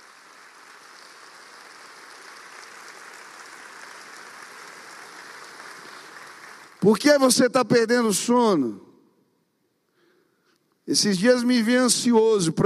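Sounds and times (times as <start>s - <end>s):
audience applause: 0.0s - 7.0s
speech: 6.8s - 8.9s, 10.9s - 12.6s.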